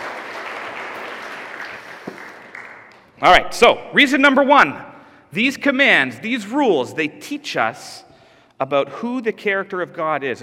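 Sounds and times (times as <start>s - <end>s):
audience applause: 0.0s - 3.0s
speech: 3.2s - 10.4s.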